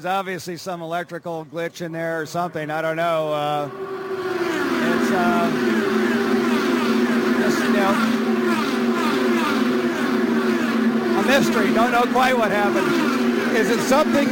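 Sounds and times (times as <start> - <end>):
speech: 0.0 - 4.3, 5.0 - 6.1, 7.5 - 8.2, 11.3 - 14.3
race car engine roaring on an oval track: 3.2 - 14.3.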